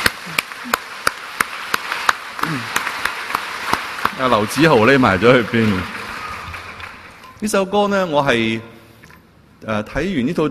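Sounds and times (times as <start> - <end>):
church audience clapping hands: 0.0 - 7.4
speech: 4.2 - 6.0, 7.4 - 8.7, 9.6 - 10.4.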